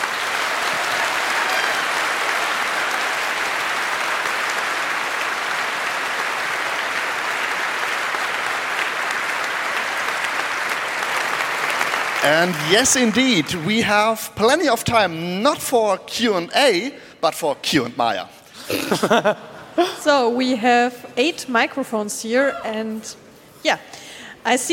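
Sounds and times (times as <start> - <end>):
audience applause: 0.0 - 14.2
speech: 12.2 - 24.7
laughter: 18.6 - 20.0.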